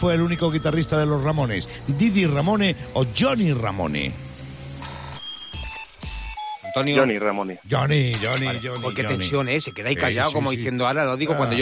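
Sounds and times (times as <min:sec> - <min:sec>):
quiz-show bell ringing: 0:00.0 - 0:01.6, 0:08.1 - 0:10.6
speech: 0:00.0 - 0:04.2, 0:06.8 - 0:11.6.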